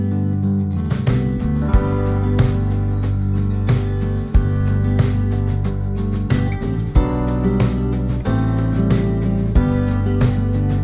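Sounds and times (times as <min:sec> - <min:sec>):
playback without backing vocals: 0:00.1 - 0:10.8.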